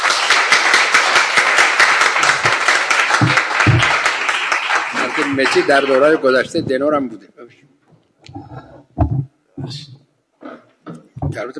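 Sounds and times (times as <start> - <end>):
audience applause at a Congress 60 gathering honoring a champion: 0.0 - 6.3
speech: 5.4 - 7.6, 9.7 - 9.9.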